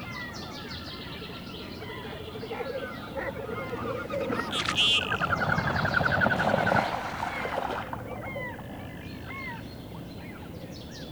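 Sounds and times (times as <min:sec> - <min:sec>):
Common goldeneye calling: 0:01.1 - 0:09.5.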